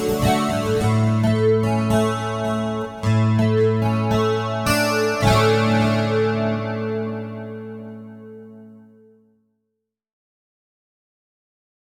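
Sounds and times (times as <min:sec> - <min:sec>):
stereo guitar with chorus and delay effects: 0:00.0 - 0:09.1.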